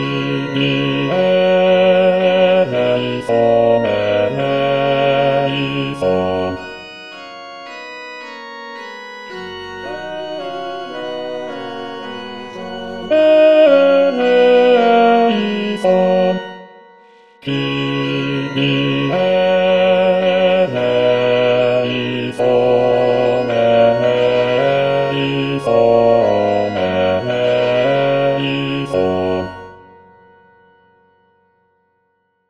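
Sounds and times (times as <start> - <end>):
bass voice singing a Kyrie: 0.0 - 6.7, 9.8 - 16.6, 17.5 - 29.6.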